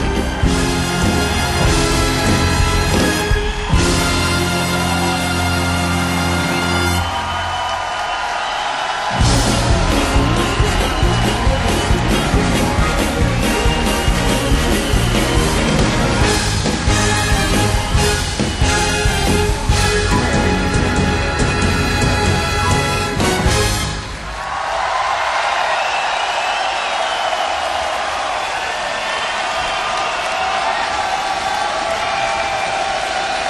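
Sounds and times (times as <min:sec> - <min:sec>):
concert crowd cheering wildly: 0:00.0 - 0:33.4.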